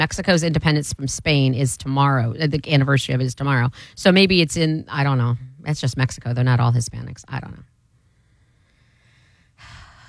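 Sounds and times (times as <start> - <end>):
speech: 0.1 - 7.7
person exhaling heavily: 8.8 - 10.0.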